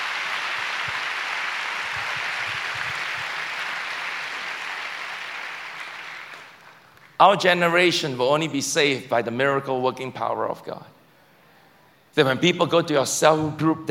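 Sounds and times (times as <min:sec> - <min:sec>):
audience clapping: 0:00.0 - 0:07.2
speech: 0:07.2 - 0:11.0, 0:12.2 - 0:13.8.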